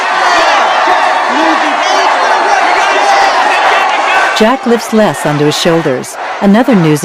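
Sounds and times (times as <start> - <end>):
scattered whoops from crowd: 0.0 - 4.4
large crowd of protesters cheering and shouting in street: 0.0 - 7.0
speech: 4.4 - 7.0.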